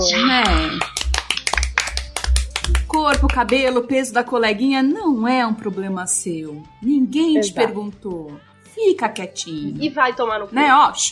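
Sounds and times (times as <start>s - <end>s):
speech: 0.0s - 1.0s, 3.0s - 11.1s
applause: 0.4s - 3.8s.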